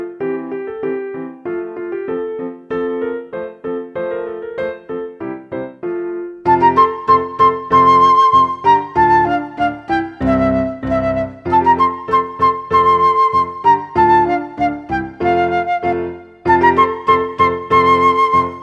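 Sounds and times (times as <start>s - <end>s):
piano accompaniment: 0.0s - 18.6s
solo flute: 6.5s - 18.6s.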